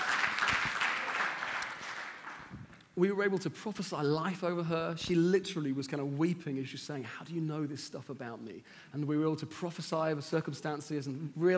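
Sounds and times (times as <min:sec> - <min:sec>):
audience applause: 0:00.0 - 0:02.6
speech: 0:03.0 - 0:11.5.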